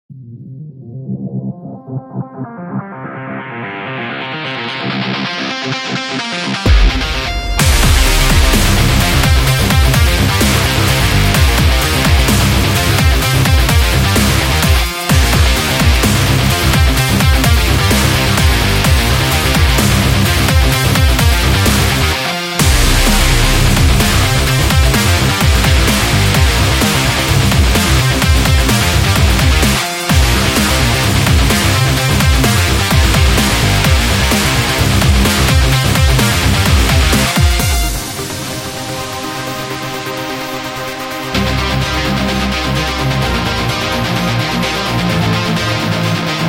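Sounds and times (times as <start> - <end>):
extreme sport dubstep music: 1.2 - 46.4.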